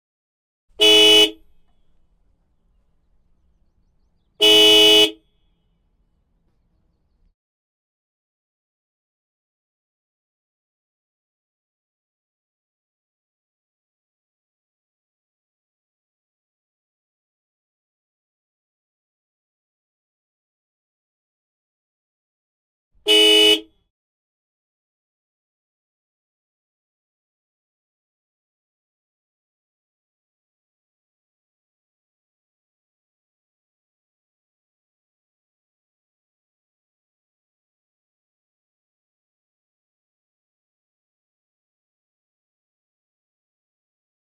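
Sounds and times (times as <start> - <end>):
MAN Lion's Coach bus horn: 0.8 - 1.5, 4.4 - 5.2, 23.0 - 23.7.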